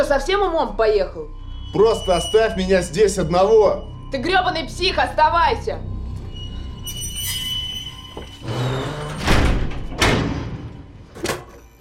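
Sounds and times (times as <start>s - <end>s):
speech: 0.0s - 5.9s
door pulled shut in a film scene: 9.1s - 11.5s.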